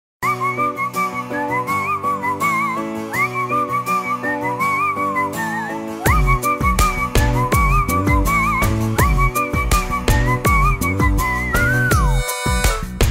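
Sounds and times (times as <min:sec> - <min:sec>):
Tamil love ringtone: 0:00.3 - 0:13.0.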